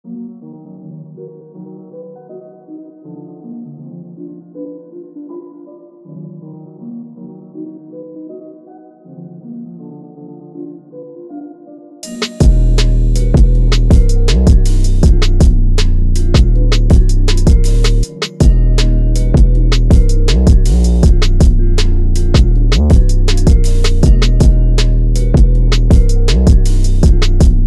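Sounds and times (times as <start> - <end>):
beat: 12.0 - 27.6.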